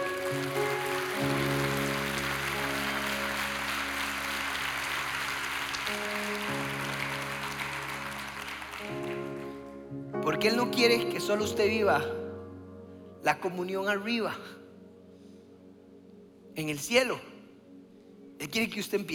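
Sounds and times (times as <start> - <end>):
audience applauding: 0.0 - 9.8
speech: 10.4 - 12.2, 13.3 - 14.6, 16.6 - 17.3, 18.4 - 19.1.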